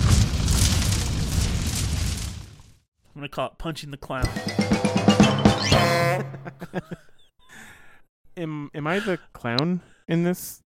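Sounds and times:
fire sound effect roaring and crackling: 0.0s - 2.8s
speech: 3.2s - 5.0s, 5.6s - 7.1s, 8.4s - 10.7s.

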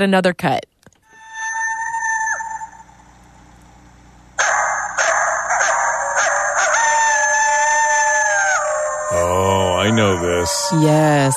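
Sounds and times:
speech: 0.0s - 0.7s, 9.9s - 11.3s
coyotes howling and yipping: 1.0s - 3.1s, 4.4s - 11.3s.

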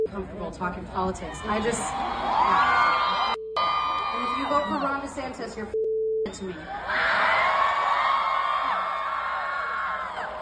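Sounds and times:
speech: 0.1s - 3.4s, 4.4s - 7.0s
crowd cheering: 1.2s - 5.4s, 6.5s - 10.4s.

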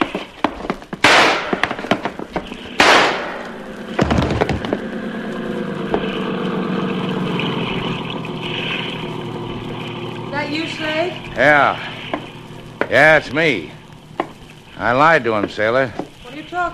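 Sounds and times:
gunshots: 1.0s - 2.0s, 2.7s - 4.7s
engine-like drone: 1.8s - 16.7s
speech: 11.0s - 11.9s, 12.9s - 13.8s, 14.8s - 16.7s.

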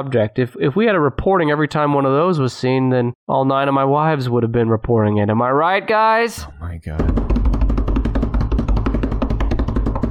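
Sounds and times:
speech: 0.0s - 7.5s
applause sound effect: 6.9s - 10.0s.

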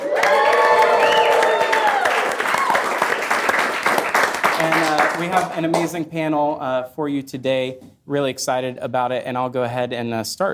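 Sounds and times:
live crowd whooping and shouting: 0.0s - 3.2s
live crowd clapping: 0.0s - 6.0s
speech: 5.2s - 10.5s.

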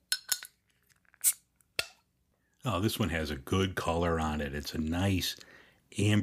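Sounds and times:
beer bottle cap coming off with a hiss: 1.2s - 1.4s
speech: 2.6s - 6.2s.

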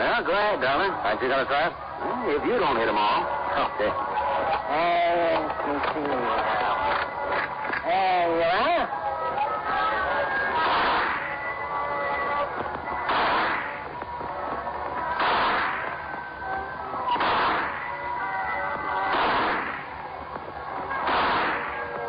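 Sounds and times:
steady tonal background: 0.0s - 22.0s
speech: 0.2s - 7.1s, 7.9s - 9.0s
shooting-gallery gunshots knocking down clay pipes: 10.5s - 11.4s, 13.0s - 13.9s, 15.1s - 16.2s, 17.1s - 18.1s, 19.0s - 20.1s, 20.9s - 22.0s.

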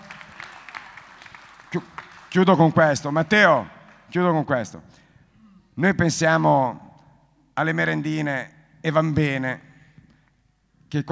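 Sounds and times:
audience applause: 0.0s - 4.0s
speech: 1.7s - 5.0s, 5.8s - 6.8s, 7.6s - 9.7s, 10.9s - 11.1s.

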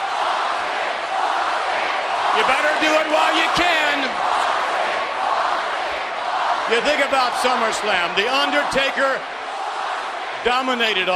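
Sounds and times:
arena crowd cheering: 0.0s - 11.1s
speech: 2.4s - 4.4s, 6.7s - 9.4s, 10.4s - 11.1s.

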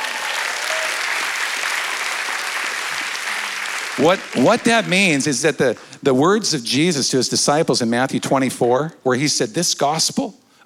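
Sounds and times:
audience applause: 0.0s - 5.3s
speech: 4.0s - 10.6s.

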